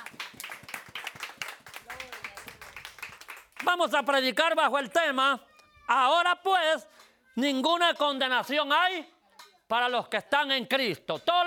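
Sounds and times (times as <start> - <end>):
audience clapping: 0.0 - 4.2
speech: 3.7 - 9.1, 9.7 - 11.4.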